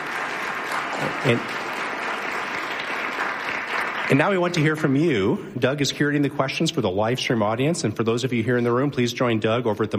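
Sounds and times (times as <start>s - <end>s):
audience applause thanking the panelists: 0.0s - 5.4s
speech: 1.2s - 1.6s, 4.1s - 9.9s.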